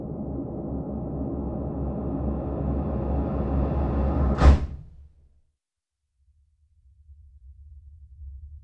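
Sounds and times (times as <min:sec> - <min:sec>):
train: 0:00.1 - 0:04.7.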